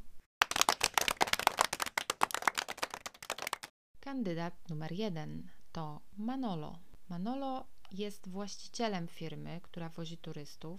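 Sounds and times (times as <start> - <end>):
audience clapping: 0.4 - 3.7
speech: 4.1 - 10.7.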